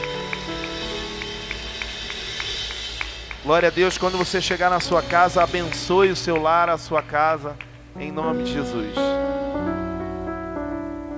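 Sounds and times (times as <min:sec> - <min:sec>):
audience applauding loudly: 0:00.0 - 0:07.9
sustained keyboard notes: 0:00.0 - 0:11.1
speech: 0:03.4 - 0:09.1.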